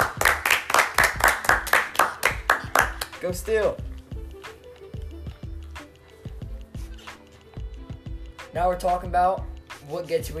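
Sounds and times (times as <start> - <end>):
people clapping: 0.0 - 3.2
speech: 3.2 - 3.9, 8.6 - 10.3.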